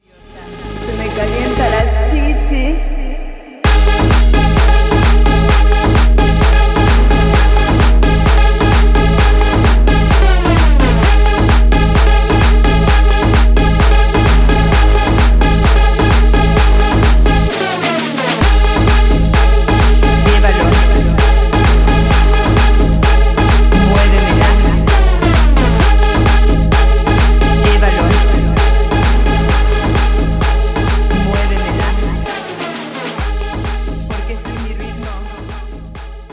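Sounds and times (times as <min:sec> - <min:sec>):
tribal remix at 130 bpm: 0:00.0 - 0:36.3.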